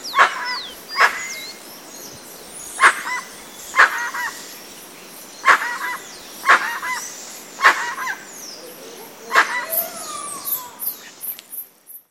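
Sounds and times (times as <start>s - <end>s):
Penelope obscura calling: 0.0s - 1.6s, 2.8s - 4.4s, 5.4s - 11.3s.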